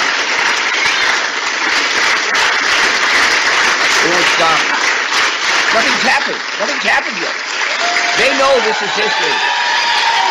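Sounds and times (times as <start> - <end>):
crowd cheering: 0.0 - 10.2
speech: 4.4 - 4.7, 5.7 - 7.5, 8.2 - 9.6
people shouting: 7.6 - 10.2.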